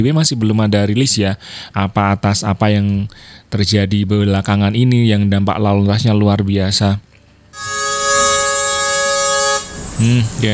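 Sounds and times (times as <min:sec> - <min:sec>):
speech: 0:00.0 - 0:07.7, 0:10.0 - 0:10.5
truck air horn blast: 0:07.6 - 0:10.5.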